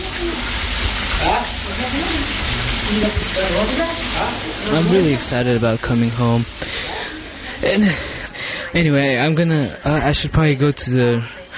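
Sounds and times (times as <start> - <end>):
food sizzling and frying in a kitchen at a relative's house in Peshawar: 0.0 - 11.5
speech: 2.9 - 7.0, 7.6 - 11.5.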